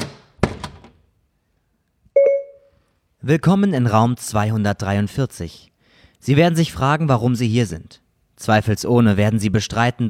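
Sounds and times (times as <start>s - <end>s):
door closing: 0.0s - 1.1s
speech: 3.2s - 10.0s.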